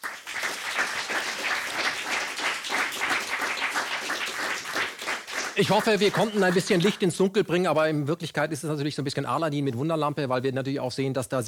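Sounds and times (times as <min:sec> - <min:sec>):
audience applause: 0:00.0 - 0:07.1
speech: 0:05.6 - 0:11.4.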